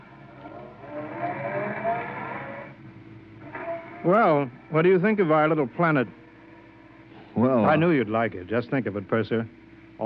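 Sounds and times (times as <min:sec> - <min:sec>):
car driving off toward the spaceport: 0:00.0 - 0:07.1
speech: 0:04.0 - 0:06.2, 0:07.4 - 0:10.0.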